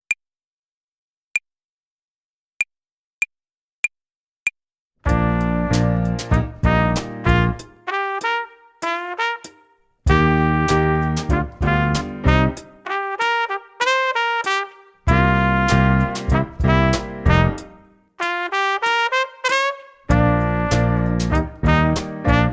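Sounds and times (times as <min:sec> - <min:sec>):
hi-hat play-along rhythm exercise: 0:05.1 - 0:22.5.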